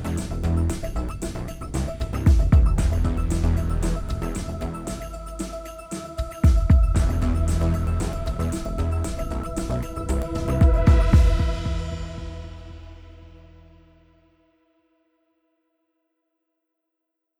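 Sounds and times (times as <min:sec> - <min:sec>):
menacing underscore music: 0:00.0 - 0:13.9.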